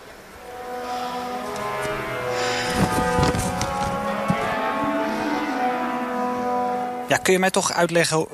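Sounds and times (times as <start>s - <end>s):
symphony orchestra rehearsing in concert hall: 0.0s - 7.8s
speech: 7.1s - 8.3s.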